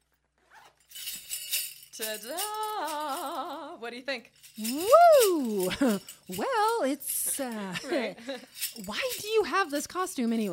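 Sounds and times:
clothing zipper being pulled: 0.4s - 0.9s
speech: 2.0s - 10.5s.

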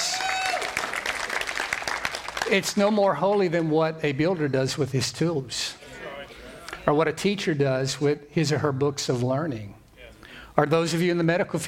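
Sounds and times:
audience applause for musicians: 0.0s - 3.7s
speech: 2.5s - 5.8s, 6.9s - 9.8s, 10.6s - 11.6s.

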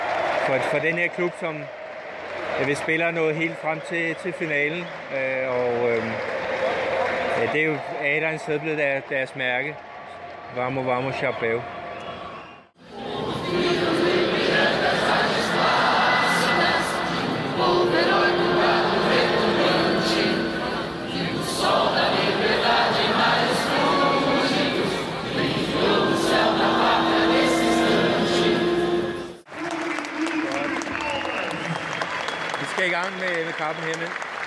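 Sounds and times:
stadium crowd applauding: 0.0s - 12.4s, 29.5s - 34.4s
crowd noise: 0.0s - 34.3s
speech: 0.5s - 1.8s, 2.6s - 6.4s, 7.4s - 9.9s, 10.5s - 11.8s, 32.8s - 34.3s.

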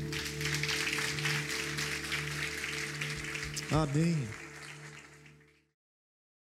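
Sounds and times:
audience applause: 0.0s - 5.7s
speech: 3.7s - 4.4s.

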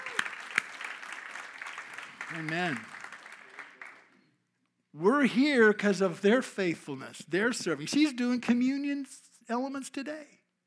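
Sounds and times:
church audience clapping: 0.0s - 4.3s
speech: 2.3s - 3.0s, 5.0s - 10.4s.

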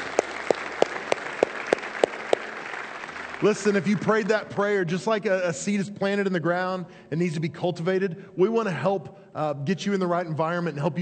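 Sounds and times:
audience applause: 0.0s - 4.4s
speech: 3.4s - 11.0s.

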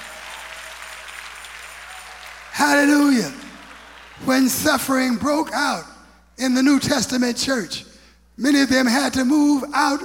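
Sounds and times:
audience clapping hands: 0.0s - 5.1s
speech: 2.6s - 3.4s, 4.3s - 10.0s.

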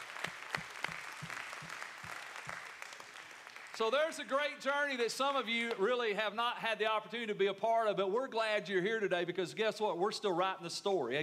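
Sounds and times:
audience applause: 0.0s - 4.4s
speech: 3.8s - 11.2s.

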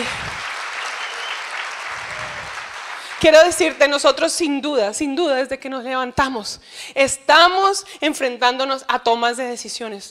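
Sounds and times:
audience applause: 0.0s - 3.9s
speech: 3.2s - 10.1s.

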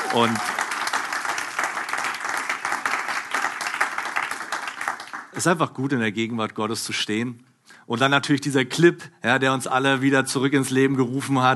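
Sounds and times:
audience applause: 0.0s - 5.4s
speech: 0.1s - 0.5s, 5.4s - 11.5s.

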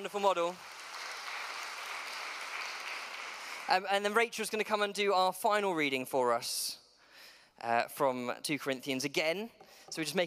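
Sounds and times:
speech: 0.0s - 0.7s, 3.7s - 6.8s, 7.6s - 10.2s
audience applause: 0.5s - 3.7s.

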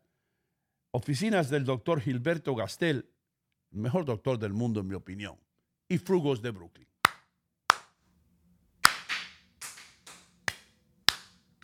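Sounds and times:
speech: 1.0s - 3.1s, 3.7s - 6.9s
audience clapping rhythmically: 7.1s - 8.0s, 8.8s - 11.6s.

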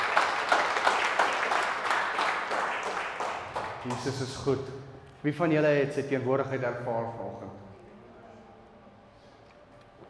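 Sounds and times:
audience clapping hands: 0.0s - 4.5s
speech: 3.8s - 7.6s.

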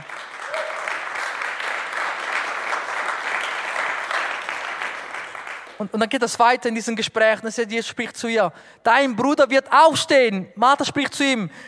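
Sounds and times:
audience applause: 0.0s - 5.8s
speech: 5.8s - 11.6s.

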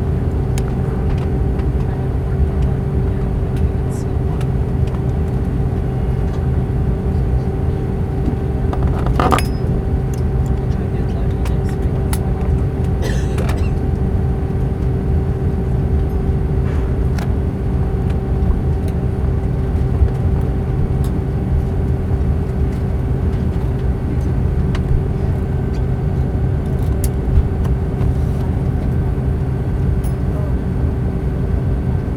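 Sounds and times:
aircraft engine roar during takeoff roll: 0.0s - 32.1s
clicks and rattles: 8.7s - 9.7s.

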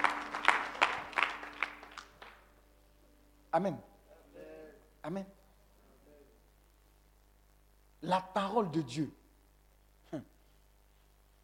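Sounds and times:
church congregation hand clapping: 0.0s - 2.5s
speech: 3.6s - 3.9s, 5.0s - 5.4s, 8.0s - 9.2s, 10.1s - 10.3s.

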